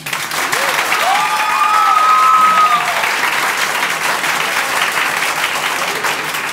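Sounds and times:
audience applause: 0:00.0 - 0:06.5
whistles and cheering voices: 0:00.4 - 0:03.4.

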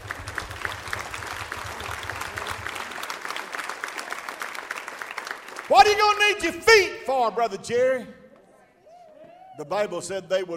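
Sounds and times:
audience clapping hands: 0:00.0 - 0:06.9
speech: 0:05.7 - 0:08.2, 0:09.6 - 0:10.5.

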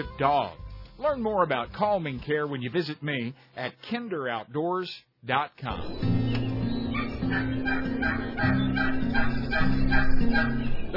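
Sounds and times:
speech: 0:00.0 - 0:06.2, 0:07.3 - 0:10.9
turkey gobble call: 0:06.8 - 0:10.7.

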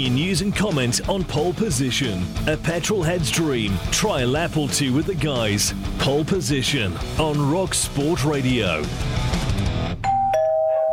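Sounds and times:
speech: 0:00.0 - 0:09.5
doorbell ringing a two-note ding-dong: 0:10.0 - 0:10.9.

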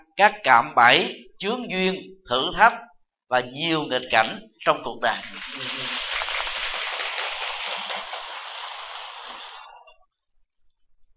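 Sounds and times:
speech: 0:00.2 - 0:06.1
audience applause: 0:05.2 - 0:09.9.

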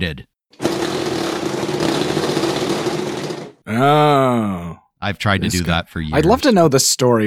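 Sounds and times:
speech: 0:00.0 - 0:00.3, 0:03.7 - 0:07.2
red tremor shaker motor buzzing: 0:00.6 - 0:03.5.

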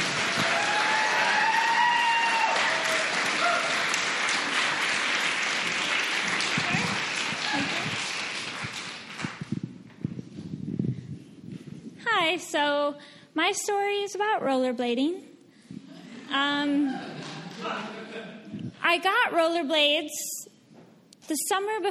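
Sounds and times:
crowd applauding: 0:00.0 - 0:09.6
speech: 0:12.4 - 0:15.3, 0:16.3 - 0:18.0, 0:18.9 - 0:20.3, 0:21.3 - 0:21.8.

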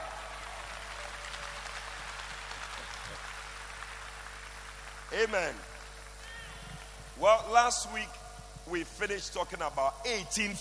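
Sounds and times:
audience clapping: 0:00.0 - 0:07.2
low hum: 0:00.0 - 0:10.5
speech: 0:05.1 - 0:05.7, 0:07.2 - 0:10.5.

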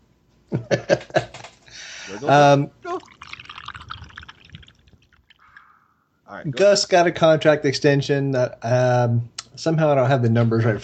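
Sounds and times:
speech: 0:00.5 - 0:01.2, 0:02.2 - 0:02.8, 0:06.4 - 0:10.8
Delaware Wing T beer being poured, splashing and fizzing: 0:02.3 - 0:05.7.

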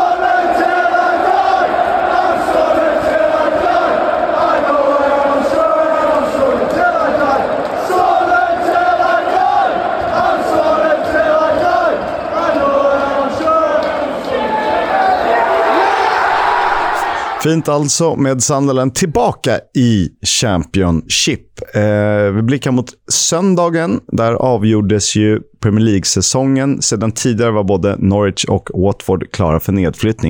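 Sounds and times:
football supporters chanting in a stadium: 0:00.0 - 0:17.7
speech: 0:17.4 - 0:30.2.

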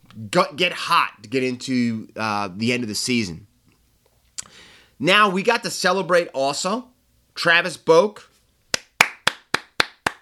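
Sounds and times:
speech: 0:00.2 - 0:03.5, 0:05.0 - 0:08.3
applause: 0:08.8 - 0:10.2.

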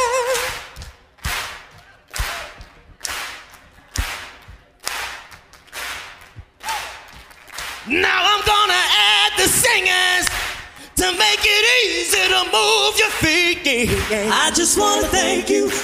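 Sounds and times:
hand claps keeping a beat: 0:00.0 - 0:08.7, 0:09.5 - 0:14.9
speech: 0:11.4 - 0:15.8.

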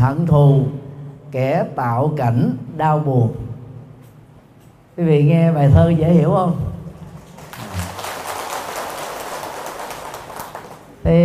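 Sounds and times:
speech: 0:00.0 - 0:03.4, 0:05.0 - 0:06.7, 0:11.0 - 0:11.2
audience applauding: 0:07.2 - 0:11.0.

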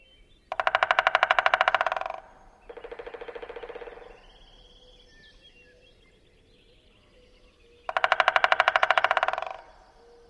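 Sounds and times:
American three-toed woodpecker drumming: 0:00.5 - 0:04.6, 0:07.8 - 0:10.2.

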